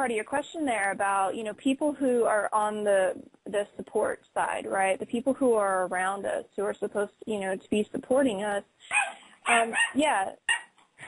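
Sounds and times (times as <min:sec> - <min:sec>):
speech: 0:00.0 - 0:10.5
dog barking in high yelping bursts: 0:08.9 - 0:10.8.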